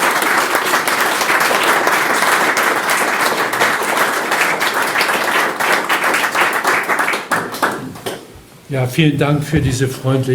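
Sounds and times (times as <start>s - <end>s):
audience applause: 0.0s - 8.3s
speech: 8.7s - 10.3s.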